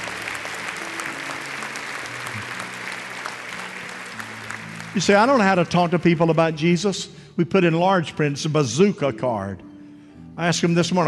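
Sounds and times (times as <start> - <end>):
audience applause: 0.0 - 6.1
speech: 5.0 - 9.7, 10.4 - 11.0.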